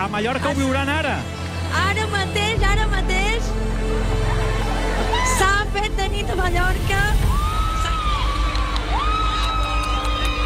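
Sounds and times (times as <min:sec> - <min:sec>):
speech: 0:00.1 - 0:04.2, 0:05.2 - 0:07.4
deep rumble: 0:02.4 - 0:10.4
large outdoor crowd shouting and cheering on a beach: 0:03.9 - 0:05.7, 0:07.2 - 0:10.4.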